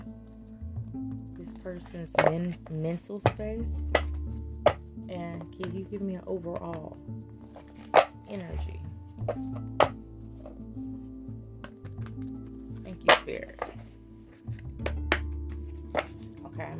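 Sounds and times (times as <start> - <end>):
speech: 1.6 - 4.1, 5.1 - 7.3, 8.3 - 10.0
tarot cards being shuffled: 1.8 - 4.8, 7.4 - 10.7, 11.6 - 16.4.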